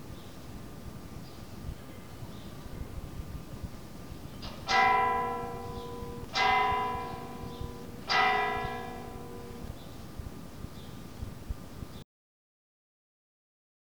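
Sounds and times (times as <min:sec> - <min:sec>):
church bells tolling a funeral responsory toll: 0:04.7 - 0:09.8.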